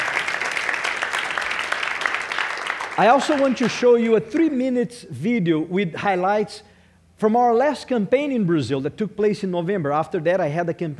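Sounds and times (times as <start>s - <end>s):
audience applause: 0.0s - 4.0s
speech: 3.0s - 10.9s.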